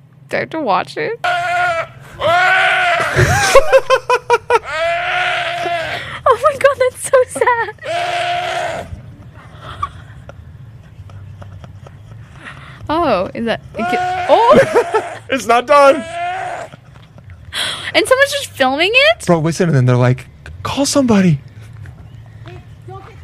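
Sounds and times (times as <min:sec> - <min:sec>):
speech: 0:00.3 - 0:01.4, 0:03.2 - 0:04.2, 0:12.9 - 0:16.2, 0:18.0 - 0:21.5
deer crying while attacked by a bear: 0:01.2 - 0:03.8, 0:04.4 - 0:06.2, 0:07.6 - 0:09.9, 0:13.7 - 0:16.9
laughter: 0:02.2 - 0:17.9.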